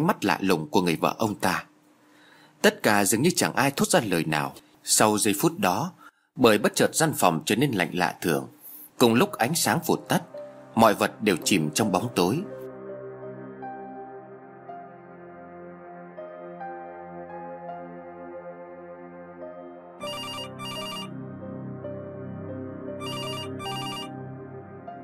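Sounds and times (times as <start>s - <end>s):
speech: 0.0s - 1.7s, 2.6s - 12.6s
droning musical tone: 12.8s - 25.0s
telephone ringing in double trills: 20.0s - 21.1s, 23.0s - 24.2s.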